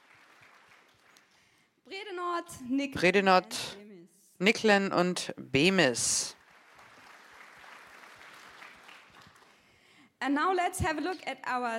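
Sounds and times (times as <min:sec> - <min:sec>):
audience applause: 0:00.0 - 0:01.4, 0:06.4 - 0:09.6
speech: 0:02.1 - 0:03.8, 0:04.4 - 0:06.4, 0:10.2 - 0:11.7.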